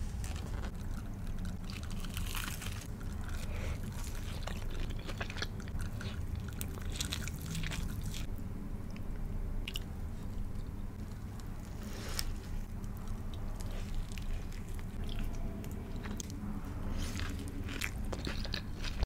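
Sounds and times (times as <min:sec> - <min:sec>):
person eating fast food: 0:00.2 - 0:19.0.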